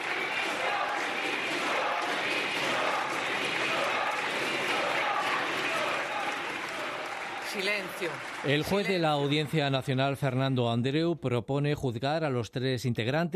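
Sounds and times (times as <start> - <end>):
shouts of resignation in parliament: 0.0 - 8.2
parliament applause: 0.0 - 10.7
speech: 7.6 - 13.3.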